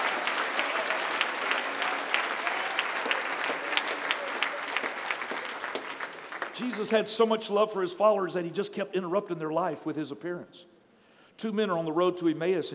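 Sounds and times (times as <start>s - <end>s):
audience clapping hands: 0.0s - 7.4s
speech: 6.6s - 10.7s, 11.4s - 12.7s.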